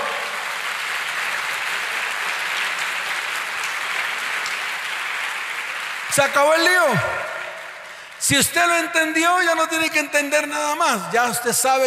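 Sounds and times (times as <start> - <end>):
loud audience applause: 0.0 - 9.6
speech: 6.2 - 7.3, 8.2 - 11.8.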